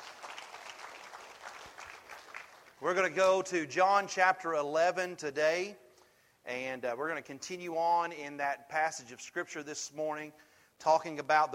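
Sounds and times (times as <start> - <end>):
audience hand clapping: 0.0 - 2.8
speech: 2.8 - 5.8, 6.5 - 11.5.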